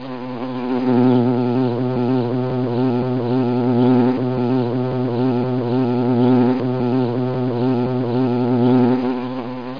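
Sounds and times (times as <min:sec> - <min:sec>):
fly: 0:00.0 - 0:09.7.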